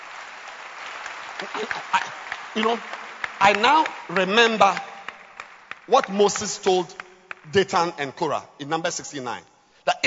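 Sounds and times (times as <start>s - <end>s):
audience clapping hands: 0.0s - 8.0s
speech: 1.4s - 4.9s, 5.9s - 10.0s.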